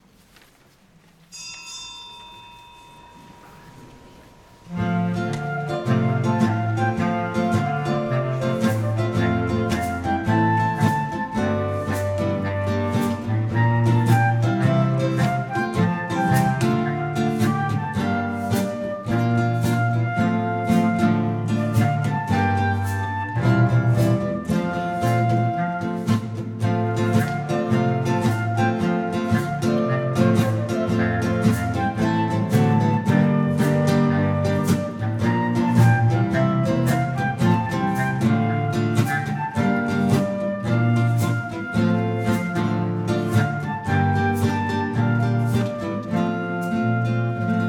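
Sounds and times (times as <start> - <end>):
instrumental processional entrance music: 0.1 - 47.6.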